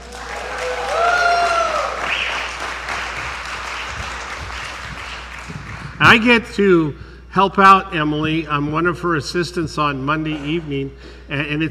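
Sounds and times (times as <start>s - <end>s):
audience applause: 0.0s - 6.1s
speech: 6.1s - 11.6s.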